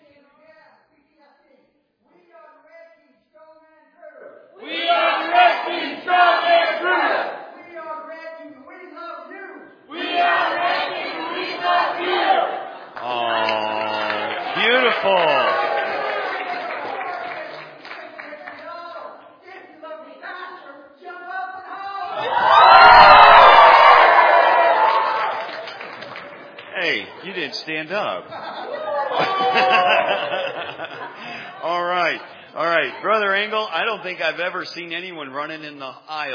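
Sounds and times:
group shouting a team cheer at an evening games event: 4.6 - 7.6, 9.9 - 17.3, 22.0 - 25.8, 28.7 - 30.3
laughter: 13.0 - 17.4, 28.0 - 33.1
speech: 34.0 - 36.3.

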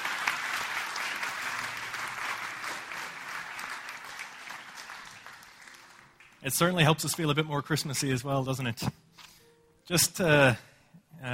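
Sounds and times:
round of applause: 0.0 - 6.9
speech: 6.4 - 9.0, 9.9 - 11.3.

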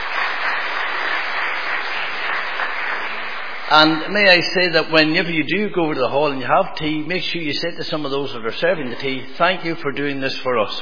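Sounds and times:
audience applause: 0.0 - 4.2
speech: 3.7 - 10.8.

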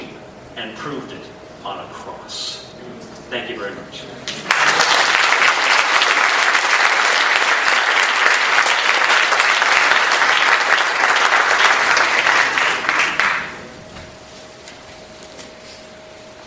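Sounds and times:
speech: 0.6 - 5.1
audience applause: 4.4 - 13.7.

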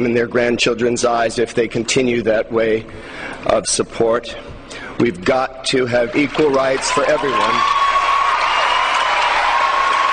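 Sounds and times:
speech: 0.0 - 7.8
audience cheering and whooping: 6.1 - 10.1.

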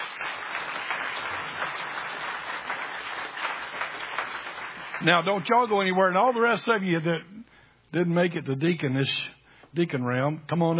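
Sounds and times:
round of applause: 0.0 - 5.5
speech: 5.0 - 7.3, 7.9 - 10.7.

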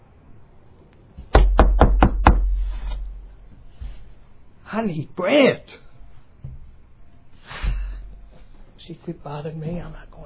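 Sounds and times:
man knocking on a door: 1.3 - 2.6
speech: 4.7 - 5.9, 8.8 - 10.2.

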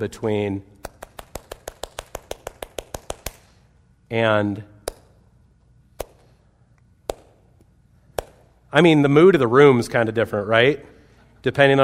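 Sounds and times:
speech: 0.0 - 0.8, 4.1 - 4.7, 8.7 - 11.8
hand clapping demonstrating tempo: 0.8 - 3.6, 4.8 - 5.2, 6.0 - 6.4, 7.0 - 8.5.

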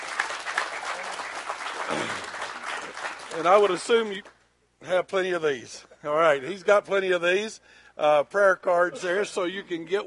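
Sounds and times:
crowd applauding: 0.0 - 4.3
speech: 1.9 - 2.3, 3.4 - 10.0.

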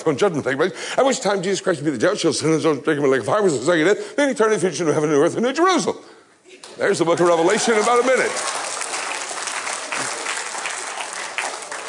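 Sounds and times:
speech: 0.0 - 8.6
audience clapping: 6.6 - 11.8.

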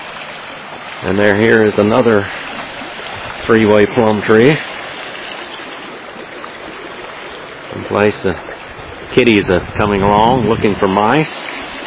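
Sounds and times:
flowing creek water: 0.0 - 11.8
speech: 1.0 - 2.4, 3.5 - 4.7, 7.9 - 8.5, 9.2 - 11.5.

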